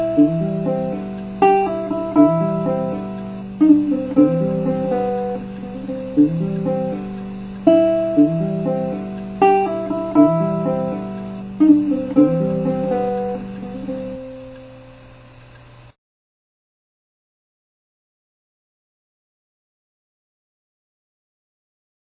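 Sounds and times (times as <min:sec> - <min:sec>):
strings strummed: 0:00.0 - 0:15.2.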